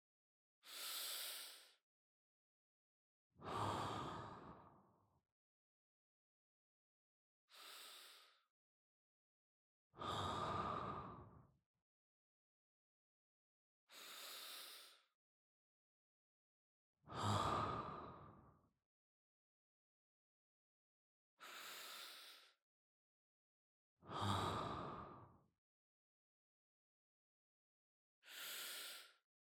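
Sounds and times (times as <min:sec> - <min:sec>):
person breathing in sleep: 0:00.6 - 0:01.8, 0:03.4 - 0:04.8, 0:07.5 - 0:08.4, 0:10.0 - 0:11.4, 0:13.9 - 0:15.1, 0:17.1 - 0:18.4, 0:21.4 - 0:22.6, 0:24.1 - 0:25.2, 0:28.3 - 0:29.2.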